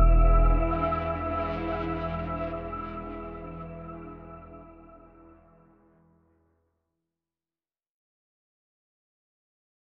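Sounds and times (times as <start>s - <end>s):
neon nightscape tension music: 0.0s - 5.6s.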